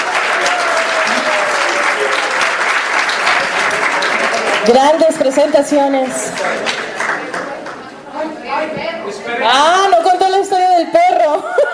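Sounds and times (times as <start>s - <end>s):
audience applause: 0.0s - 7.9s
speech: 4.6s - 6.8s, 9.4s - 11.5s.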